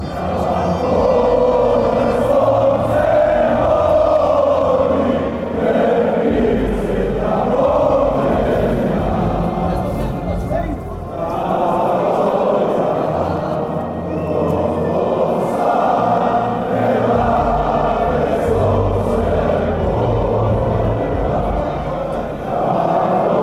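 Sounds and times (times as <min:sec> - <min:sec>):
chant: 0:00.0 - 0:23.4.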